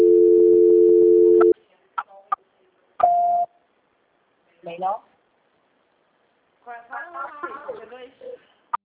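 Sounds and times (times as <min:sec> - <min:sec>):
telephone tones while transferring a call with star 2: 0:00.0 - 0:01.5.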